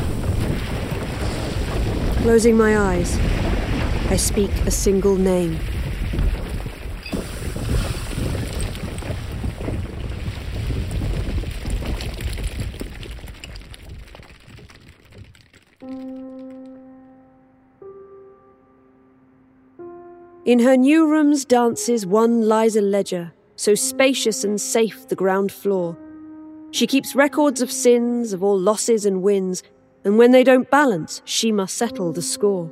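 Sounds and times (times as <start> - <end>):
cold wind howling out of a crack: 0.0 - 15.4
speech: 2.2 - 3.3, 4.1 - 6.2, 20.5 - 26.0, 26.7 - 32.7.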